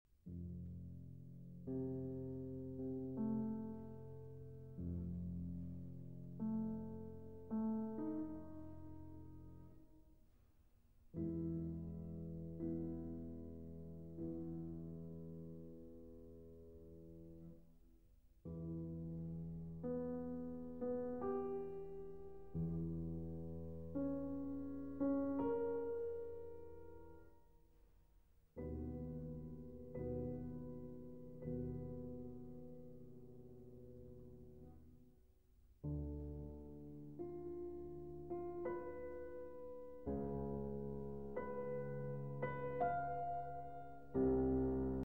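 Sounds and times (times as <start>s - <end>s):
slow classical piano sonata movement: 0.2s - 45.0s.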